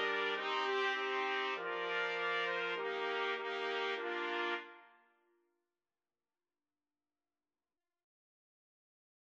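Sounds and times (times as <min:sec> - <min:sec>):
trumpets: 0:00.0 - 0:04.8.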